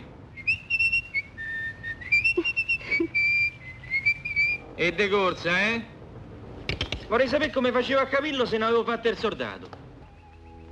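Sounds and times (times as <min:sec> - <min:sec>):
person whistling to communicate: 0:00.4 - 0:04.6, 0:10.0 - 0:10.7
speech: 0:04.8 - 0:05.9, 0:07.1 - 0:09.7.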